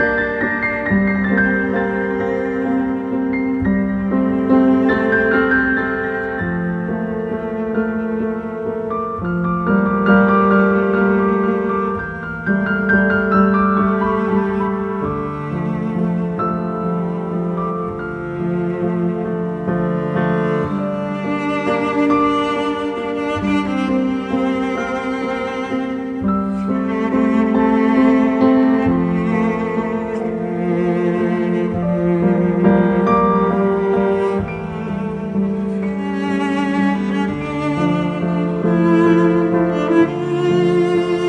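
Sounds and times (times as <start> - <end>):
piano and cello duet: 0.0 - 41.2.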